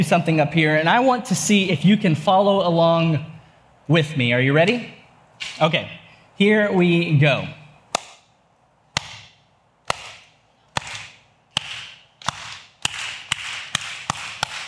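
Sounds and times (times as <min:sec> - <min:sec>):
speech: 0:00.0 - 0:03.3, 0:03.9 - 0:07.6
slow hand clapping: 0:09.0 - 0:14.6.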